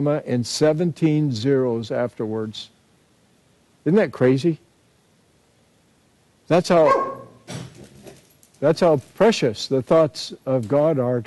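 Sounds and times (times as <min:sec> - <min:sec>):
speech: 0:00.0 - 0:02.8, 0:03.8 - 0:04.6, 0:06.5 - 0:07.7, 0:08.6 - 0:11.2
dog barking: 0:06.8 - 0:07.4.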